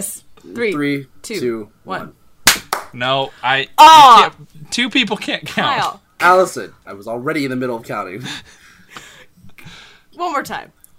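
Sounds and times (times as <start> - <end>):
speech: 0.0 - 2.2, 2.9 - 9.1, 10.2 - 10.9
single loud sharp hand clap: 2.4 - 3.0.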